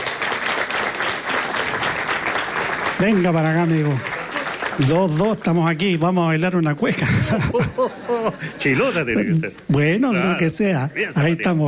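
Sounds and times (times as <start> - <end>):
audience applause for a male folk singer introduced on stage: 0.0 - 6.4
speech: 3.0 - 4.1, 4.8 - 11.6
laughter: 6.8 - 9.6.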